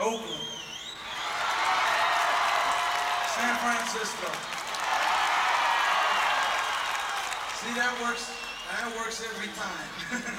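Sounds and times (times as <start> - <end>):
live crowd cheering and applauding at a touring show: 0.9 - 10.3
speech: 3.9 - 4.6, 7.6 - 10.3.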